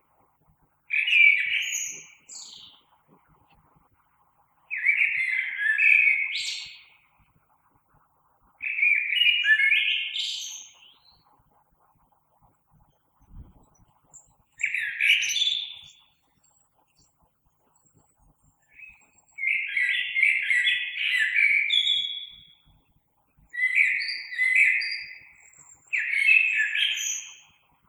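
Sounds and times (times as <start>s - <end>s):
common blackbird singing: 0.9s - 3.0s, 4.7s - 7.0s, 8.6s - 11.3s, 13.3s - 17.1s, 18.6s - 22.7s, 23.5s - 27.6s.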